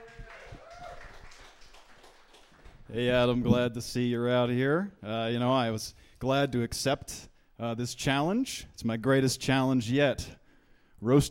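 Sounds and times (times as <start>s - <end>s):
person whooping: 0.0s - 1.2s
audience applause: 0.0s - 2.9s
speech: 2.9s - 10.4s, 11.0s - 11.2s.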